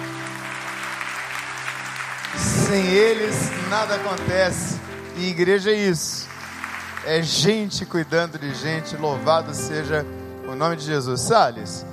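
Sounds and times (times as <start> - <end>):
audience applause: 0.0 - 8.4
speech: 2.3 - 6.3, 7.0 - 11.9.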